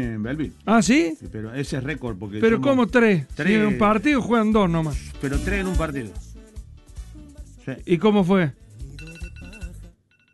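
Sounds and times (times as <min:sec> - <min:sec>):
speech: 0:00.0 - 0:06.3, 0:07.7 - 0:08.6
phone alarm electronic melody: 0:09.0 - 0:09.7.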